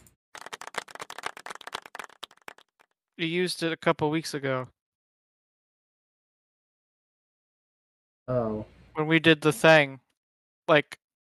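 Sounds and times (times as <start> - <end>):
clapping sound effect: 0.0 - 2.9
speech: 3.2 - 4.8, 8.3 - 10.0, 10.7 - 11.0.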